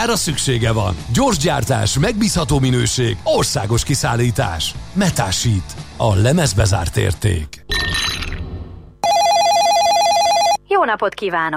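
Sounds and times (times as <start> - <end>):
speech: 0.0 - 7.8, 10.8 - 11.5
telephone ringtone in an advertisement: 9.0 - 10.6.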